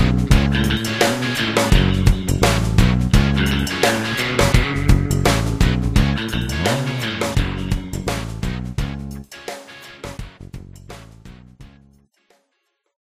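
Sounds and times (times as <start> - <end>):
warbly tone: 0.5 - 8.3.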